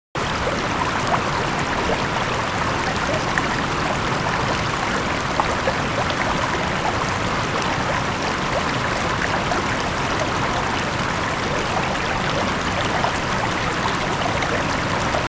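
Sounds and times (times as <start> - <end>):
large water stream: 0.2 - 15.3.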